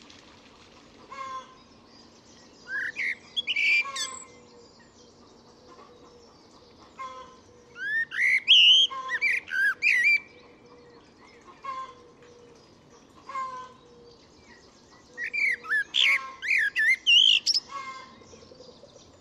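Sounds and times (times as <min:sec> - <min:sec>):
bird giving varied whistled and chattering notes: 0:02.7 - 0:04.3, 0:07.8 - 0:10.3, 0:15.2 - 0:17.7.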